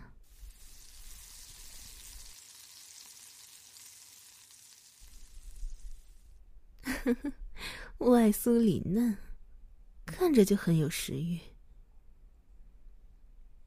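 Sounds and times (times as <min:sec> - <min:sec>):
meat frying in a pan with seasoning powder: 0:00.2 - 0:06.3
speech: 0:07.0 - 0:09.2, 0:10.2 - 0:11.5.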